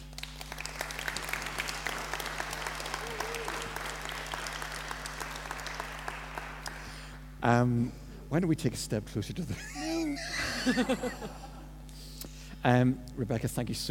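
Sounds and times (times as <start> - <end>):
audience clapping to welcome a guest on stage: 0.0 - 7.3
constant low electrical hum: 0.0 - 13.8
speech: 7.4 - 9.8, 10.6 - 11.5, 12.6 - 13.8
laughter: 9.5 - 11.7.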